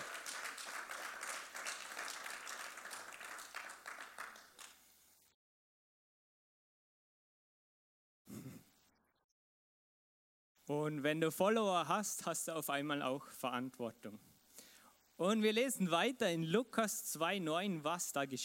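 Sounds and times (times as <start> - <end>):
audience applause: 0.0 - 4.8
speech: 10.7 - 14.3, 15.2 - 18.4.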